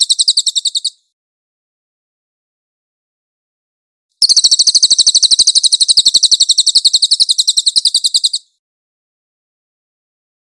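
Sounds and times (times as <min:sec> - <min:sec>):
cililin trilling: 0:00.0 - 0:01.0, 0:04.2 - 0:08.6.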